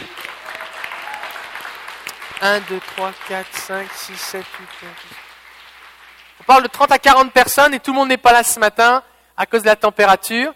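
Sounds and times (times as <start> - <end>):
audience applauding: 0.0 - 6.7
speech: 2.4 - 5.2, 6.4 - 10.5.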